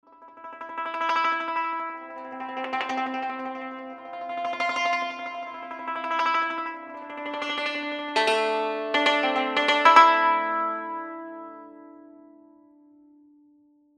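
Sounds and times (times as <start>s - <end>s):
yangqin: 0.1s - 13.2s.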